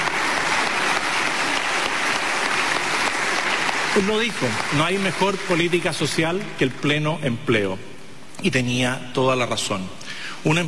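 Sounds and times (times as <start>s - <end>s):
applause: 0.0s - 6.8s
speech: 4.0s - 10.6s.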